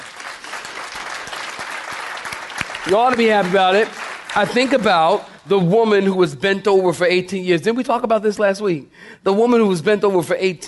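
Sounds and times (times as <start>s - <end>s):
audience clapping hands: 0.0s - 5.5s
speech: 2.8s - 10.6s.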